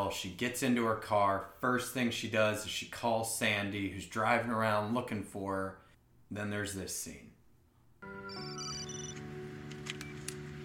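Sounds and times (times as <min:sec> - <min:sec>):
speech: 0:00.1 - 0:07.3
phone ringing with a bright electronic ringtone: 0:08.0 - 0:10.4.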